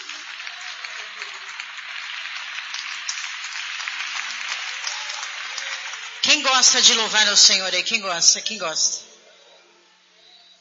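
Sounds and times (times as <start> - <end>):
audience applause: 0.0 - 7.1
speech: 6.4 - 9.0.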